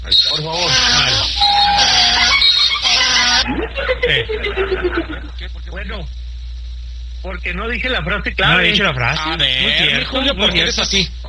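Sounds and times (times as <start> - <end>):
speech: 0.0 - 1.0, 4.1 - 6.2, 7.2 - 11.2
donkey bray sound effect: 0.0 - 5.4
laughter: 0.0 - 5.5, 8.4 - 11.0.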